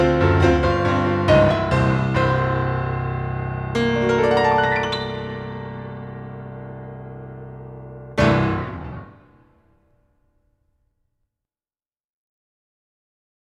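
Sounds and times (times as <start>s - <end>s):
turnaround jam session music: 0.0s - 3.2s, 3.8s - 9.2s.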